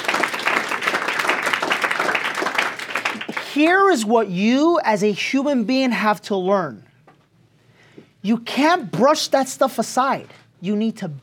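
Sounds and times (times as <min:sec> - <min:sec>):
audience applause: 0:00.0 - 0:03.5
speech: 0:03.6 - 0:06.9, 0:08.2 - 0:11.2.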